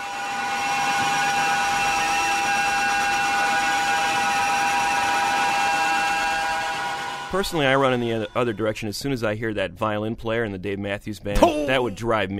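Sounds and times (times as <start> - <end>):
grating screeching guitar feedback drone: 0.0 - 9.1
speech: 7.3 - 12.3.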